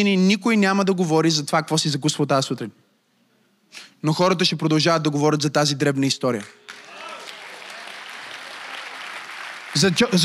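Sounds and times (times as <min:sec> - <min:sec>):
speech: 0:00.0 - 0:02.8, 0:03.7 - 0:06.7, 0:09.8 - 0:10.2
audience applause: 0:06.7 - 0:10.2.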